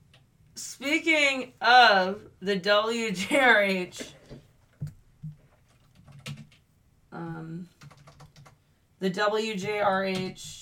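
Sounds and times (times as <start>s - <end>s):
speech: 0.8s - 4.2s, 9.0s - 10.6s
typing on a computer keyboard: 4.8s - 6.6s, 7.8s - 8.6s.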